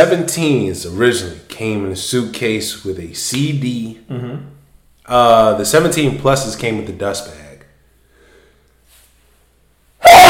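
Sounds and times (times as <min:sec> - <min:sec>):
speech: 0:00.0 - 0:07.4
person sneezing: 0:04.1 - 0:04.5.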